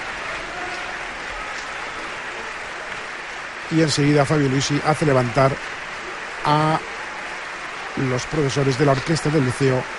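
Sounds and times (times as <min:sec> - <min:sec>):
audience applauding after an opera performance at Barcelona's Liceu: 0:00.0 - 0:09.9
speech: 0:03.7 - 0:05.8, 0:06.4 - 0:06.8, 0:08.0 - 0:09.9.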